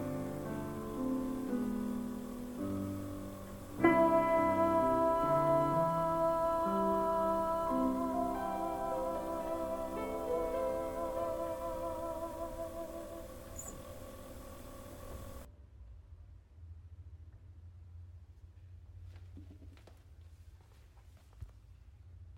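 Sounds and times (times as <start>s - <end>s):
soprano choir singing: 0.0s - 15.5s.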